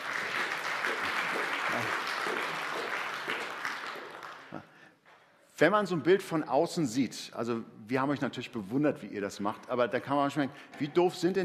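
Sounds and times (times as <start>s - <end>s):
audience applause: 0.0s - 4.8s
speech: 5.6s - 11.4s.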